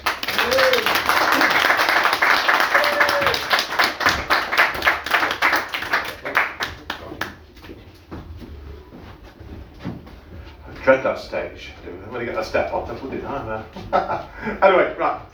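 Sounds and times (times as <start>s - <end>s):
crowd applauding: 0.0s - 7.4s
laughter: 0.4s - 3.4s, 13.6s - 14.7s
speech: 11.1s - 15.3s.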